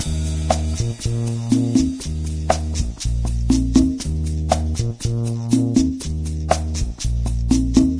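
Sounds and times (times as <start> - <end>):
cafe music: 0.0 - 7.9.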